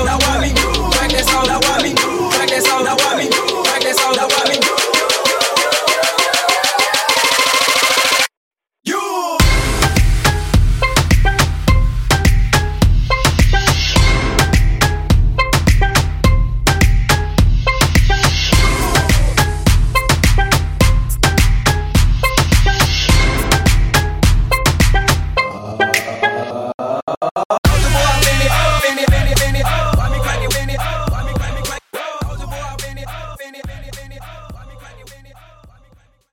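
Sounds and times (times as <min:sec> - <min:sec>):
a cappella vocals: 0:00.0 - 0:06.2, 0:27.7 - 0:36.2
moombahton twerk dance track at 105 bpm: 0:00.0 - 0:08.3, 0:09.4 - 0:36.0.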